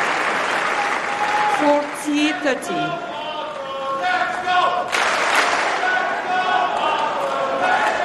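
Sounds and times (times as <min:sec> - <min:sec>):
audience cheering: 0:00.0 - 0:08.0
speech: 0:01.6 - 0:03.1
audience chanting a name: 0:01.6 - 0:08.0.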